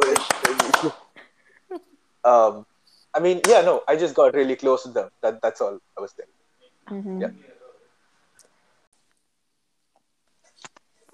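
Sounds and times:
hands clapping: 0:00.0 - 0:01.0, 0:03.4 - 0:03.8
speech: 0:02.2 - 0:07.5.

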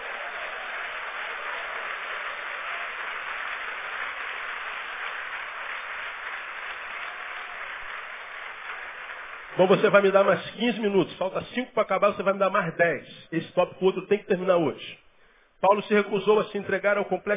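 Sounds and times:
audience applauding: 0:00.0 - 0:10.8
speech: 0:09.6 - 0:15.0, 0:15.6 - 0:17.3.

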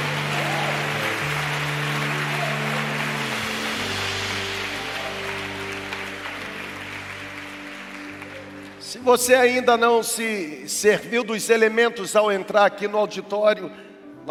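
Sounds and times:
audience applauding: 0:00.0 - 0:09.8
speech: 0:08.9 - 0:14.2.

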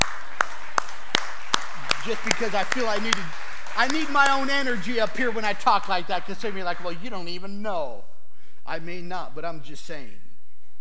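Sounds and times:
speaker clapping hands: 0:00.0 - 0:07.1
speech: 0:02.0 - 0:08.1, 0:08.7 - 0:10.2.

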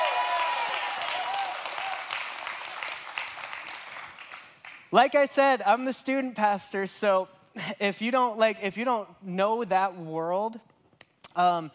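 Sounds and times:
round of applause: 0:00.0 - 0:04.9
speech: 0:04.9 - 0:10.7, 0:11.4 - 0:11.7.

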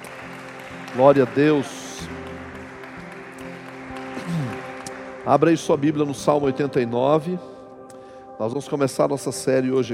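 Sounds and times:
audience applause: 0:00.0 - 0:06.1
speech: 0:00.9 - 0:02.2, 0:05.3 - 0:07.5, 0:08.4 - 0:09.9.

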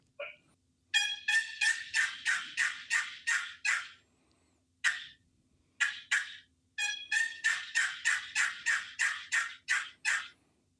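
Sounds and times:
raspy turkey yelps made on a hunting call: 0:01.0 - 0:04.0, 0:04.8 - 0:05.2, 0:05.8 - 0:10.4.

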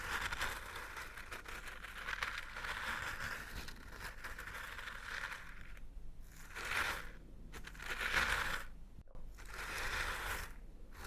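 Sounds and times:
crunchy stirring with pieces grinding and scraping together: 0:00.0 - 0:11.0.

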